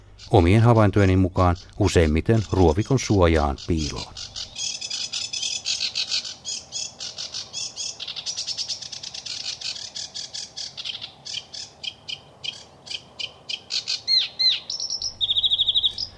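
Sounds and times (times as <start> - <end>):
sedge warbler chattering song: 0.0 - 16.1
speech: 0.2 - 4.3.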